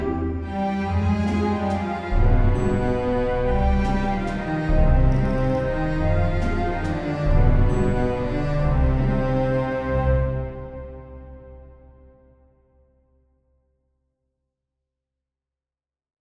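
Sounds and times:
waltz music: 0.0s - 11.7s.

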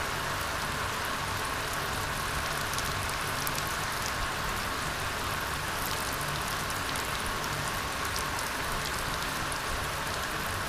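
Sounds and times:
rain: 0.0s - 10.6s.

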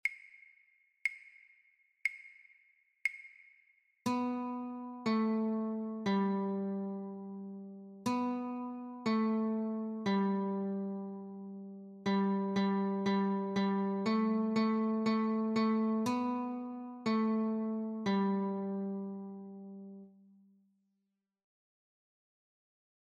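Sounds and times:
guitar notes: 4.0s - 20.2s.

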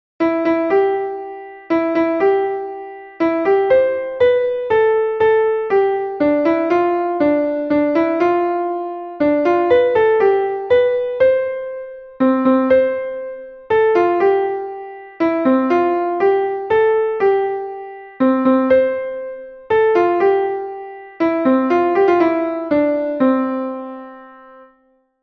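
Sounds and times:
classical piano lullaby: 0.2s - 25.2s.

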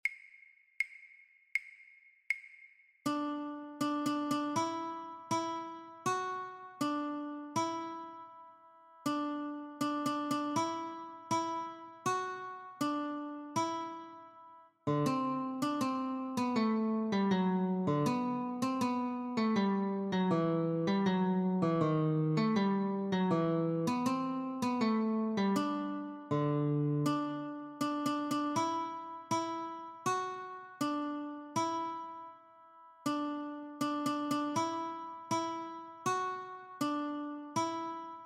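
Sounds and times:
guitar notes: 3.1s - 38.2s.

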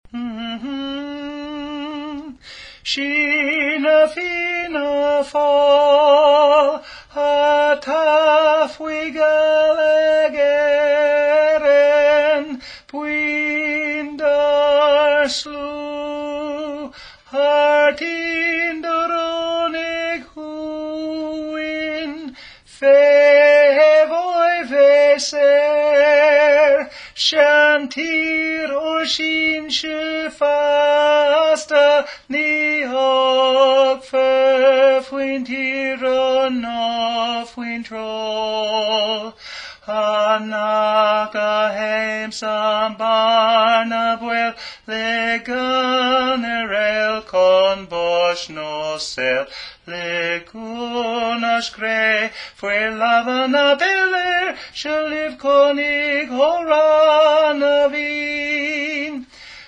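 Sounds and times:
Gaelic tenor part singing: 0.1s - 59.4s.

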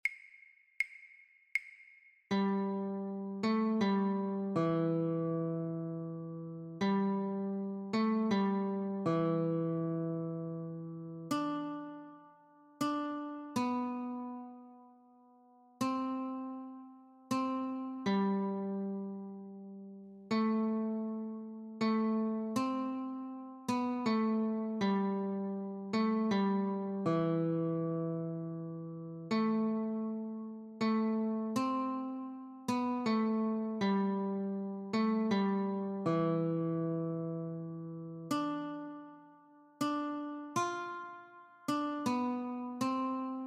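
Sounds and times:
guitar notes: 2.3s - 43.4s.

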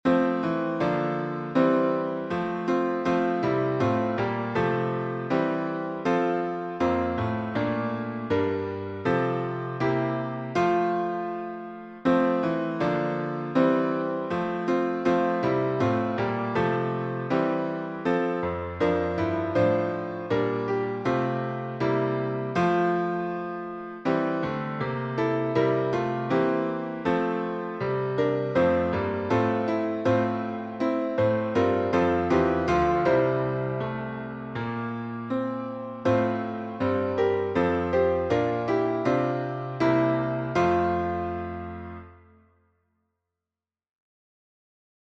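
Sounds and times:
piano synth: 0.0s - 42.4s.

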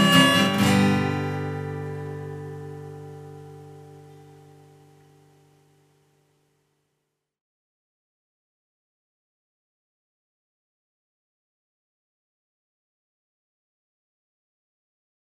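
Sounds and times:
harmonica: 0.0s - 3.9s
guitar: 0.0s - 6.6s.

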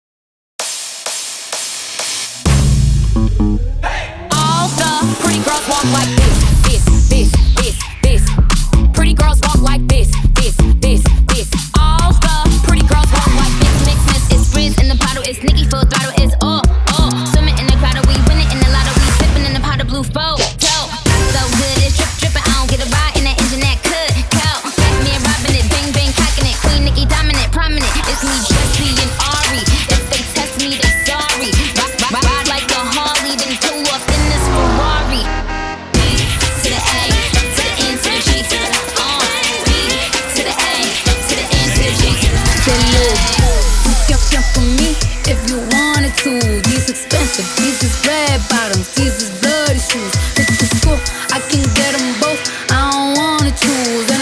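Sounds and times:
hip hop music: 0.6s - 54.2s.

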